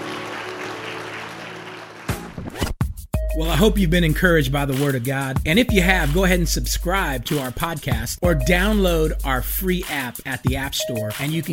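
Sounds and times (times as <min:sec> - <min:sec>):
audience clapping: 0:00.0 - 0:02.7
speech: 0:03.4 - 0:11.5.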